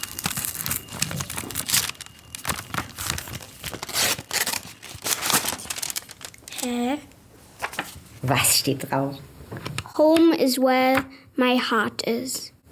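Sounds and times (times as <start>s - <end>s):
golden envelope torn open: 0.0s - 6.8s
speech: 8.2s - 9.3s, 10.0s - 12.5s.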